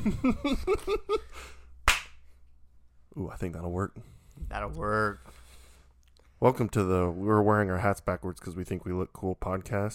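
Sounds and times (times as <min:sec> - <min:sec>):
speech: 0:00.0 - 0:01.6, 0:03.2 - 0:05.4, 0:06.4 - 0:09.9
single sharp hand clap: 0:01.8 - 0:02.2.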